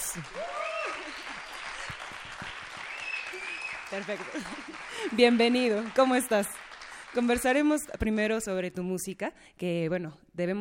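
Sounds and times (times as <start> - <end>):
audience applause: 0.0 - 7.7
speech: 0.1 - 0.6, 3.9 - 10.5
people whooping and calling out: 0.2 - 4.6
laughter: 3.3 - 5.2.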